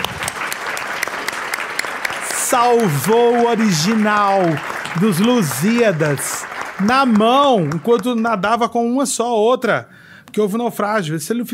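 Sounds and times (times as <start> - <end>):
audience applause after a recitation of a Camões sonnet: 0.0 - 8.6
speech: 2.5 - 11.5.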